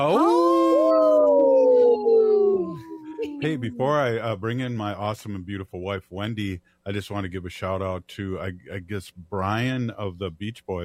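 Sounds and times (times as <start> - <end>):
speech: 0.0 - 0.4, 3.4 - 10.8
person howling like a wolf: 0.0 - 4.1.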